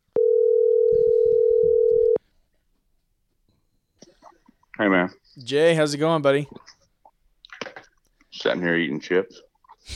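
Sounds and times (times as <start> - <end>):
telephone call ring tone: 0.2 - 2.2
speech: 4.8 - 6.8, 8.4 - 9.9.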